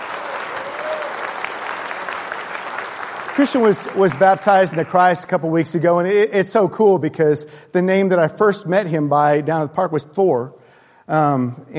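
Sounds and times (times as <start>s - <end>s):
church congregation applauding a newcomer: 0.0s - 5.5s
speech: 3.4s - 11.7s.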